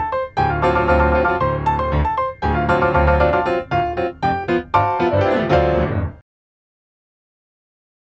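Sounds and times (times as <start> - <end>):
funk music: 0.0 - 6.2.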